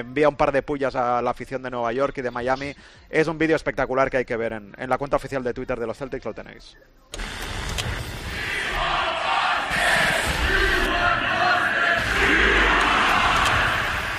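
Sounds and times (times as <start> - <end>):
speech: 0.0 - 8.0
crowd chanting: 8.2 - 14.1.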